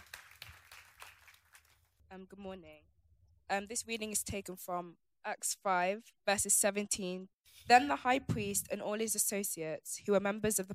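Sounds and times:
light applause from a small audience: 0.0s - 1.8s
speech: 2.1s - 10.7s.

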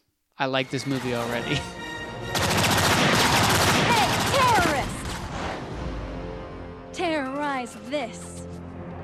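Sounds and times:
speech: 0.4s - 2.6s, 7.6s - 8.6s
shotgun blast in a movie scene: 2.4s - 5.3s.

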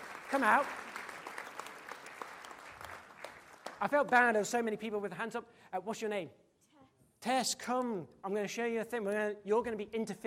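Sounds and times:
audience applause for a volunteer: 0.0s - 4.4s
speech: 0.3s - 0.9s, 3.8s - 6.4s, 7.2s - 10.2s.

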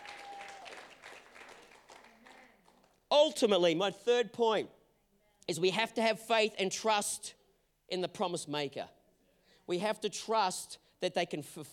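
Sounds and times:
audience applauding: 0.0s - 3.0s
speech: 3.2s - 4.8s, 5.5s - 9.0s, 9.7s - 11.7s.

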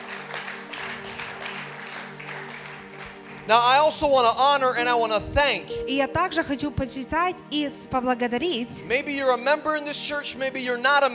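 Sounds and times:
audience applause: 0.0s - 4.8s
speech: 3.5s - 11.1s.

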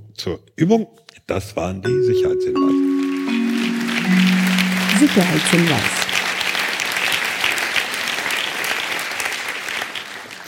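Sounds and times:
speech: 0.2s - 2.9s, 4.1s - 6.0s
live audience applause: 2.9s - 10.4s.

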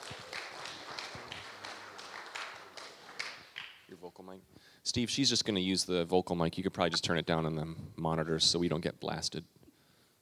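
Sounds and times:
audience round of applause: 0.0s - 4.0s
speech: 4.1s - 9.6s.

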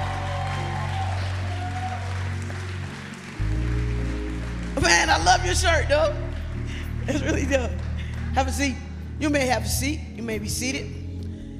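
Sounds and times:
audience clapping hands: 0.0s - 9.2s
speech: 4.8s - 6.2s, 7.1s - 11.0s.

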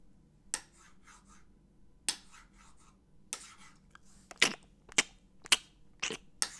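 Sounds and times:
chewing: 4.0s - 6.2s
fork and knife cutting food: 4.3s - 6.2s.

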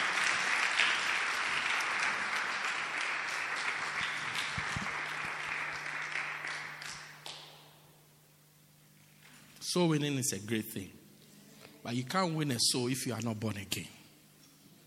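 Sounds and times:
audience clapping: 0.0s - 7.9s
speech: 9.7s - 11.0s, 11.9s - 14.0s.

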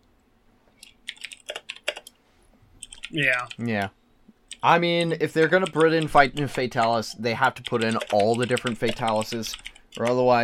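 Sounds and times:
typing on a computer keyboard: 0.8s - 2.1s, 2.8s - 3.9s, 4.5s - 4.7s, 5.4s - 10.4s
speech: 3.1s - 4.0s, 4.6s - 10.4s.

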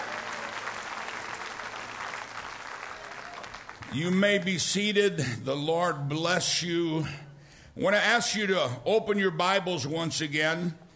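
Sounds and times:
audience clapping: 0.0s - 4.4s
speech: 3.9s - 10.8s.

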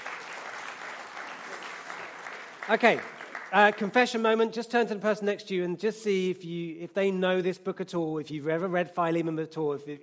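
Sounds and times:
small round of applause: 0.0s - 4.1s
speech: 2.7s - 10.0s.

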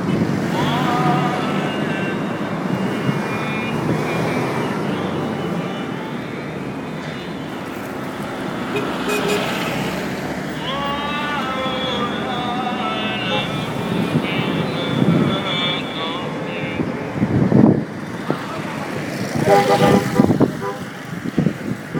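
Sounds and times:
traffic rumble in Hurghada Egypt: 0.0s - 21.9s
voices: 0.0s - 21.9s.

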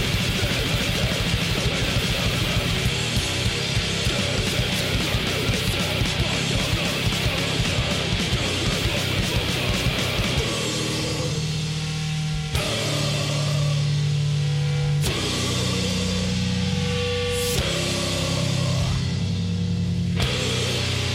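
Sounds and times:
classic grindcore song: 0.0s - 21.1s.

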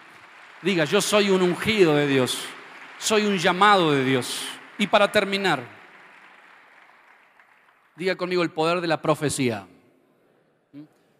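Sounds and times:
audience applause: 0.0s - 8.8s
speech: 0.6s - 5.8s, 8.0s - 9.7s, 10.7s - 10.9s.

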